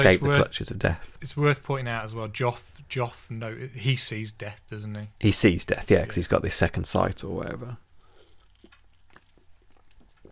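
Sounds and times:
speech: 0.0s - 7.8s
person sipping water: 8.0s - 10.3s.

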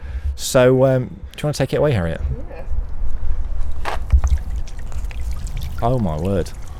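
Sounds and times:
speech: 0.4s - 2.5s, 5.8s - 6.6s
steady low rumble of water and wind: 3.6s - 6.7s
brief rushing splash: 4.1s - 6.7s.

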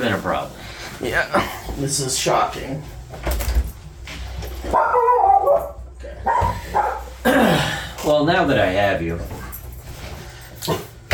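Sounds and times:
speech: 0.1s - 3.3s, 8.2s - 9.4s
dog barking and yipping: 4.7s - 7.2s.

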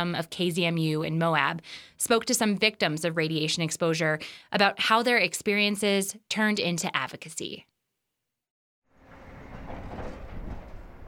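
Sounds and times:
speech: 0.0s - 7.7s
heavy trucks hauling material: 9.0s - 11.0s.

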